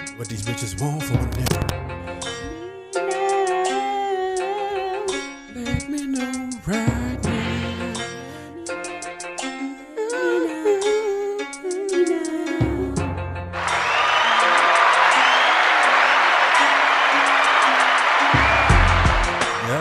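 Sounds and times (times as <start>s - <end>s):
tonal music: 0.0s - 19.7s
speech: 0.2s - 2.2s
applause: 13.6s - 19.7s.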